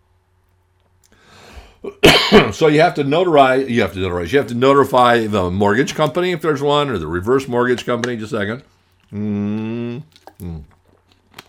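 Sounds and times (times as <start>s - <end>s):
speech: 1.8s - 10.8s
satisfied ahh: 9.0s - 10.8s
person drinking water noisily: 9.0s - 11.4s
swallowing sounds: 9.0s - 11.4s.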